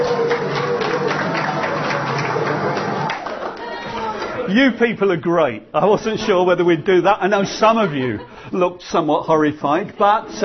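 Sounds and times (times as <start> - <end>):
audience clapping: 0.0 - 4.5
speech: 4.5 - 10.4
laughter: 7.3 - 10.4.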